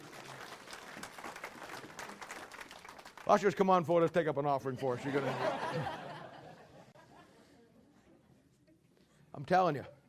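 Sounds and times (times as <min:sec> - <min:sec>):
audience applause: 0:00.0 - 0:03.6
speech: 0:03.3 - 0:06.0, 0:09.5 - 0:10.0
laughter: 0:04.7 - 0:08.2.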